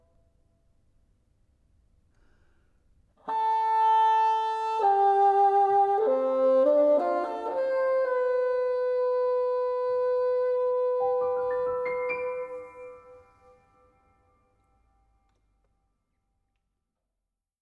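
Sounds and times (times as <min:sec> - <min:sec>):
bassoon sonata: 0:03.3 - 0:13.6.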